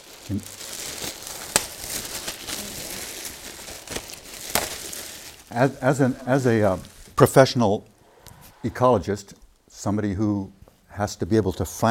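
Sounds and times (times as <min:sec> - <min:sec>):
package ripped open by hand: 0:00.0 - 0:05.4
soft continuous rustle of crumpling material: 0:00.0 - 0:07.4
speech: 0:00.3 - 0:00.6, 0:05.5 - 0:07.9, 0:08.6 - 0:11.9.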